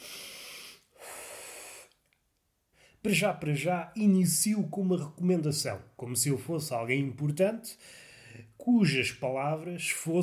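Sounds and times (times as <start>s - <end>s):
deep breath: 0.0s - 2.0s, 7.8s - 8.6s
speech: 3.0s - 10.2s.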